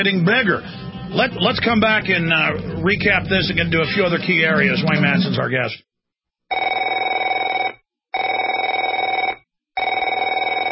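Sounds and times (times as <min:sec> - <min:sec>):
speech: 0:00.0 - 0:05.9
telephone bell ringing: 0:06.5 - 0:10.6.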